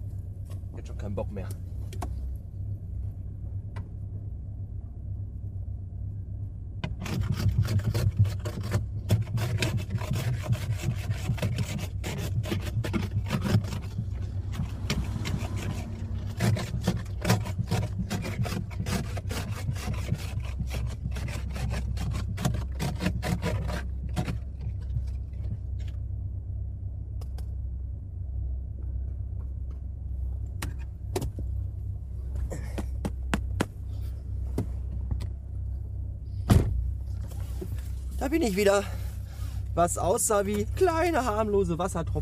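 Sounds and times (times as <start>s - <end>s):
low engine rumble: 0.0s - 42.2s
speech: 1.0s - 1.7s, 38.3s - 39.0s, 39.8s - 42.2s
ice scraper scraping frozen ice off car windshield: 6.8s - 25.2s.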